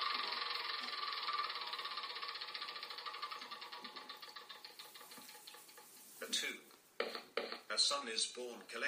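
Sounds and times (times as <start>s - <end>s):
spinner wheel clicking in a Game of Life video game: 0.0s - 6.2s
speech: 6.3s - 6.7s, 7.8s - 8.8s.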